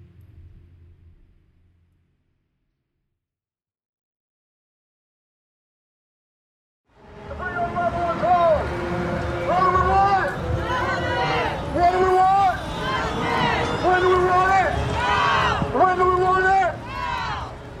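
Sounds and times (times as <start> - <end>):
crowd walking down the street at a rally: 6.9 - 17.7.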